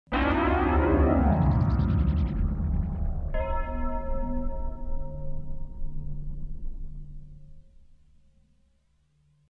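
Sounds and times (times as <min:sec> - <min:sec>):
terror twang: 0:00.1 - 0:07.4.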